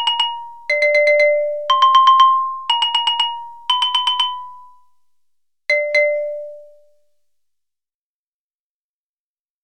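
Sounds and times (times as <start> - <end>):
xylophone: 0.0 - 5.0, 5.7 - 6.8.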